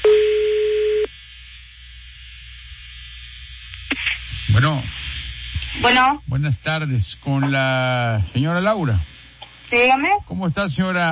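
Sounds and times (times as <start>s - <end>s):
telephone ring tone heard by a waiting caller: 0.0s - 1.1s
faint telephone line hiss: 1.1s - 11.0s
speech: 4.6s - 9.1s, 9.7s - 11.0s.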